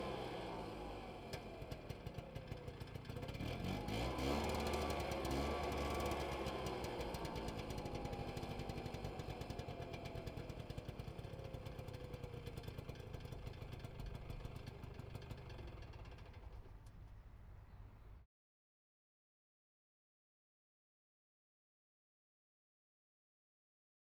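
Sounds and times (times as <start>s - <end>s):
1993 Piaggio Ape P703V three-wheeler engine idling, exterior: 0.0s - 18.2s.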